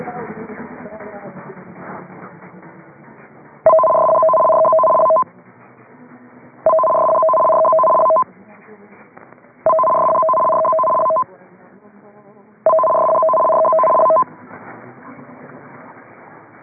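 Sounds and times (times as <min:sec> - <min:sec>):
emergency warning broadcast system test signal: 0:03.7 - 0:05.2, 0:06.7 - 0:08.2, 0:09.7 - 0:11.2, 0:12.7 - 0:14.2.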